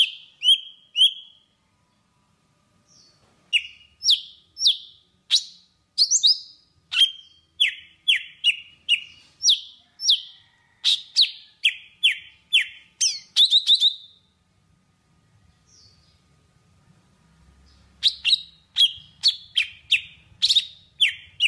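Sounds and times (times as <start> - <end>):
Java sparrow singing: 0.0 - 1.4, 3.0 - 14.2, 18.0 - 21.4.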